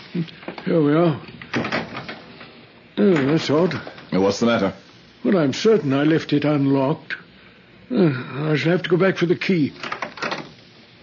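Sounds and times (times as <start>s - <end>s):
speech: 0.1s - 1.8s, 3.0s - 7.2s, 7.9s - 9.9s
door opening by itself: 1.4s - 4.0s, 9.8s - 10.6s.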